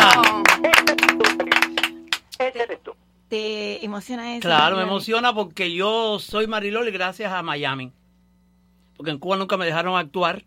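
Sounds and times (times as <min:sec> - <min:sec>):
clapping: 0:00.0 - 0:02.4
speech: 0:02.7 - 0:08.0, 0:09.0 - 0:10.4.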